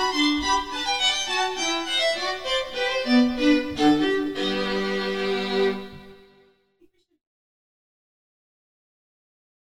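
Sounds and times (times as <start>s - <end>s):
baroque bourree: 0.0s - 6.5s.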